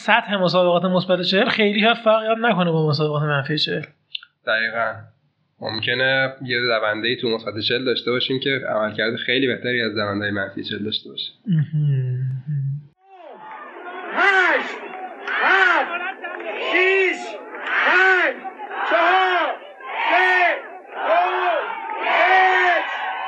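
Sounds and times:
speech: 0:00.0 - 0:12.7
crowd cheering at women's 30 km trail race in Qeshm Geopark: 0:13.0 - 0:23.2.

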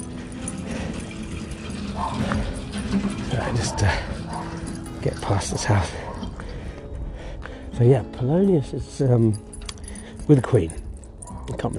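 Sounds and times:
dog barking: 0:01.8 - 0:02.6, 0:03.3 - 0:06.4, 0:11.2 - 0:11.7
speech: 0:02.0 - 0:04.2, 0:05.0 - 0:06.0, 0:07.8 - 0:09.5, 0:10.3 - 0:10.8, 0:11.5 - 0:11.7.

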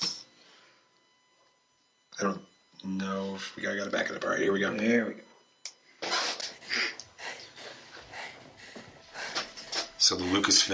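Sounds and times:
speech: 0:02.2 - 0:05.3, 0:10.1 - 0:10.7
heavy breathing in a film teaser: 0:06.5 - 0:10.7.

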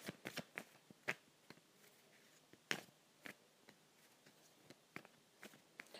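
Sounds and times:
playing cards being shuffled: 0:00.0 - 0:05.9.

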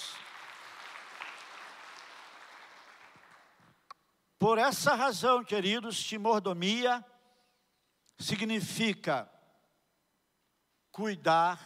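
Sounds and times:
audience applauding: 0:00.0 - 0:03.8
speech: 0:04.4 - 0:07.1, 0:08.2 - 0:09.3, 0:11.0 - 0:11.6.

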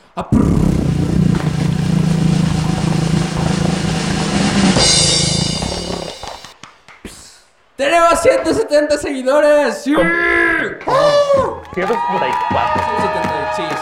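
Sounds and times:
speech: 0:00.2 - 0:00.7, 0:08.1 - 0:13.7
drumroll: 0:00.4 - 0:06.6, 0:11.2 - 0:13.7.

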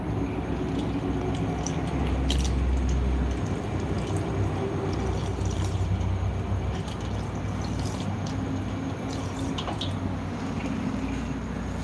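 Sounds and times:
drinking water: 0:00.1 - 0:11.8.

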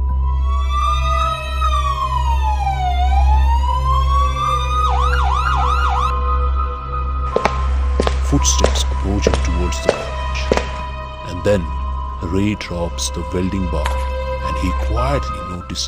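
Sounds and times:
police van siren passing by: 0:00.1 - 0:12.0
speech: 0:08.4 - 0:09.9, 0:11.4 - 0:15.8.

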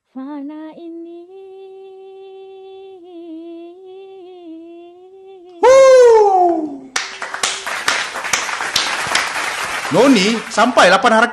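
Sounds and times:
speech: 0:00.4 - 0:01.0, 0:09.9 - 0:11.3
hand clapping: 0:06.5 - 0:11.2.

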